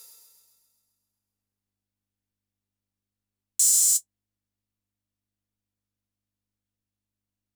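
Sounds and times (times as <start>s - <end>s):
Yamaha DD-65 hi-hat: 3.6s - 4.0s.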